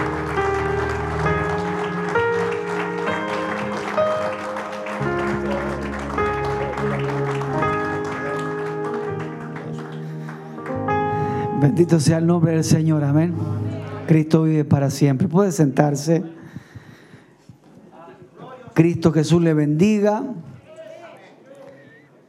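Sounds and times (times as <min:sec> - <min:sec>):
audience applause: 0:00.0 - 0:11.2
speech: 0:11.6 - 0:16.4, 0:18.8 - 0:20.5.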